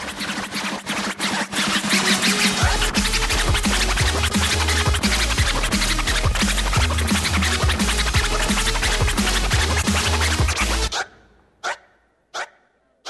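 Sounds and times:
hip-hop DJ scratching records on turntables: 0.0s - 11.0s
heavy bass-driven hip-hop beat: 2.0s - 10.9s.

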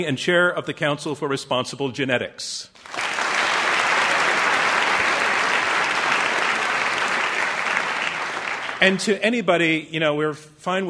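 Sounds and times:
speech: 0.0s - 3.2s, 8.8s - 10.8s
audience applause: 2.8s - 9.1s.

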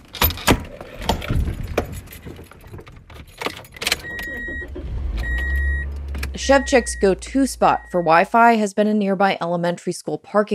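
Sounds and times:
car door opening and thumping shut: 0.0s - 7.2s
keys jangling: 1.1s - 4.1s
car engine starting and idling: 3.2s - 8.6s
steady tonal chime: 4.3s - 8.4s
speech: 6.4s - 10.5s.

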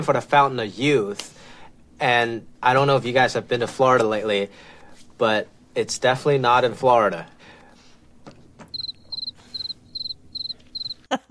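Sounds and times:
speech: 0.0s - 7.4s, 11.1s - 11.3s
cricket chirping sound effect: 8.7s - 11.0s.

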